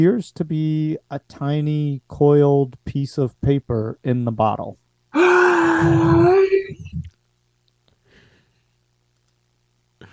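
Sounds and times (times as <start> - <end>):
speech: 0.0 - 7.1
man groaning and choking: 5.2 - 7.1.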